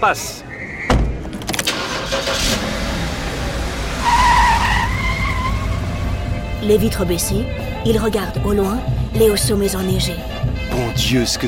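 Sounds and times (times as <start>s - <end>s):
speech: 0.0s - 0.6s, 6.6s - 11.4s
tire squeal: 0.5s - 1.2s, 3.6s - 6.3s
taxi car revving and driving off: 1.5s - 9.0s.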